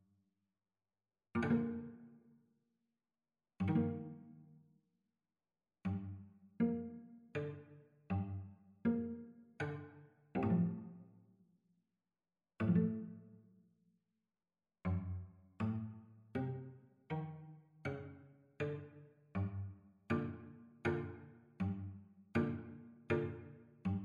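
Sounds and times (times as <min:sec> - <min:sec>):
violin and cello duet: 0:01.4 - 0:02.0, 0:03.6 - 0:04.4, 0:05.9 - 0:11.2, 0:12.6 - 0:13.2, 0:14.9 - 0:24.0.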